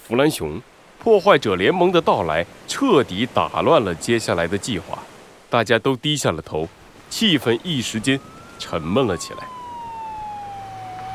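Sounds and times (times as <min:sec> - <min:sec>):
speech: 0:00.1 - 0:09.6
police car siren approaching: 0:07.6 - 0:11.1.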